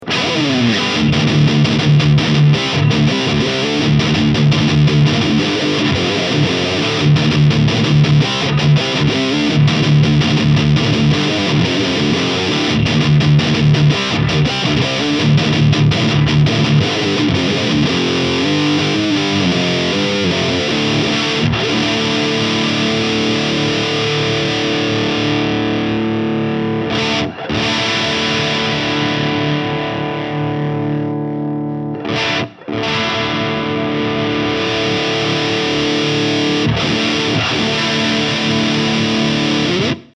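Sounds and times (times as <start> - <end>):
Engl Powerball amplifier high gain distortion: 0.0 - 40.1.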